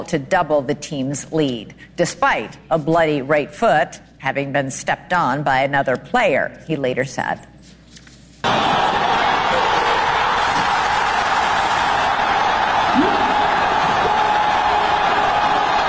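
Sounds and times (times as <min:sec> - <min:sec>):
speech: 0:00.0 - 0:07.5
euphoric soccer crowd cheering: 0:08.4 - 0:15.8.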